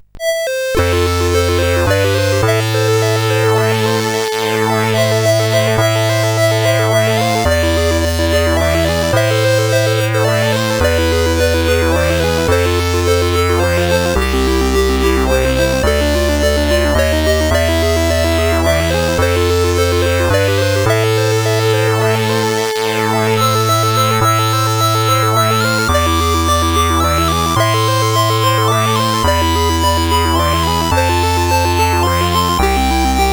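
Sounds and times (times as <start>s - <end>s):
slow and sad SID chiptune intro on CSG8580R5 chip: 0.0s - 33.3s.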